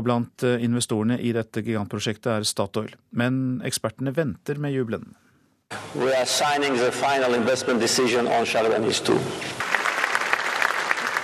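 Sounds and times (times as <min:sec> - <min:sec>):
speech: 0:00.0 - 0:09.6
applause for Azerbaijan's president Ilham Aliyev in Baku: 0:09.6 - 0:11.2.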